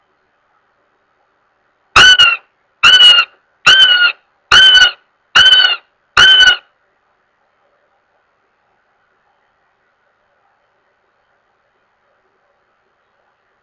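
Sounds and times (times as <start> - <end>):
Northern goshawk wailing with loud drawn-out nasal squeals: 2.0 - 6.6.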